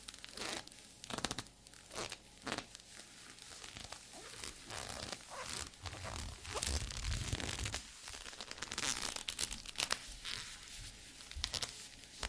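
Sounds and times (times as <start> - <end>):
faint low hum: 0.0 - 12.2
squeaky leather being flexed and rubbed: 3.8 - 9.3.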